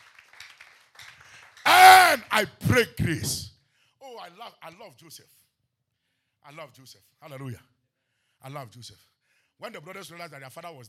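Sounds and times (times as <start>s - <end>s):
crowd clapping: 0.0s - 3.3s
speech: 1.7s - 3.5s, 4.6s - 5.4s, 6.4s - 7.7s, 8.4s - 10.8s.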